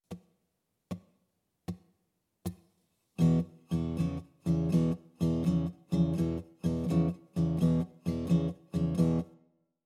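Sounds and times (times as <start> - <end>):
blues guitar in open tunings: 3.2 - 9.4.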